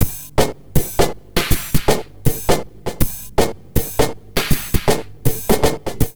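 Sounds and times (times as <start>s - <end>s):
crazy processed neuro drum loops at 80 bpm: 0.0s - 6.1s.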